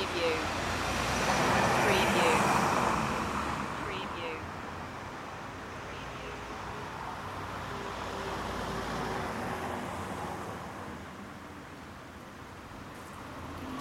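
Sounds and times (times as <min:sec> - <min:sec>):
city traffic ambience: 0:00.0 - 0:13.7.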